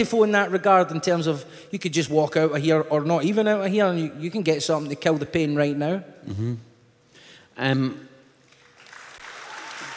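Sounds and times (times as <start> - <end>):
speech: 0.0 - 6.7, 7.6 - 8.1
audience clapping: 8.4 - 9.9.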